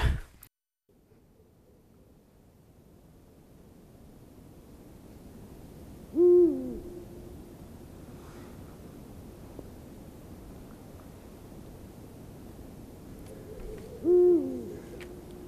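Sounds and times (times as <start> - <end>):
Eurasian eagle-owl hooting: 6.1 - 7.3, 13.3 - 15.4.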